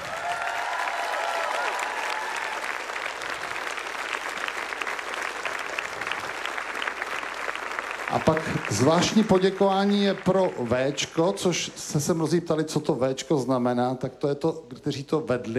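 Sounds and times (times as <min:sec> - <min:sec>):
big round of applause: 0:00.0 - 0:11.8
speech: 0:08.1 - 0:15.5.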